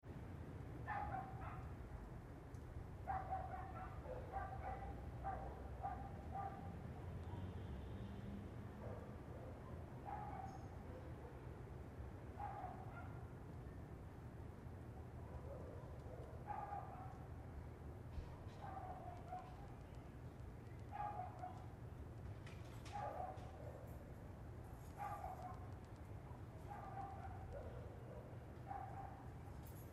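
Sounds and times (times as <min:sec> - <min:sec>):
low traffic rumble: 0:00.1 - 0:29.9
dog barking: 0:00.9 - 0:01.8, 0:03.0 - 0:07.6, 0:08.8 - 0:11.5, 0:12.4 - 0:13.3, 0:15.2 - 0:17.3, 0:18.3 - 0:19.7, 0:20.9 - 0:21.8, 0:22.9 - 0:24.0, 0:24.9 - 0:29.4.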